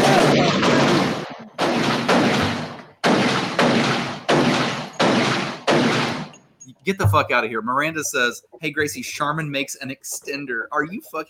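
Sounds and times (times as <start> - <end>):
rapid volley of gunshots: 0.0 - 6.4
speech: 6.9 - 11.2.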